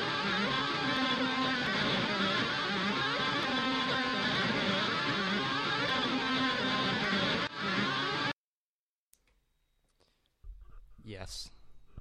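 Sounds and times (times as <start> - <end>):
industrial sound: 0.0 - 8.4.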